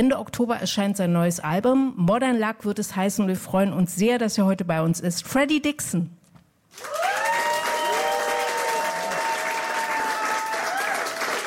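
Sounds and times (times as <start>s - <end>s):
speech: 0.0s - 6.9s
audience applause greeting a guest musician on a show: 6.7s - 11.4s.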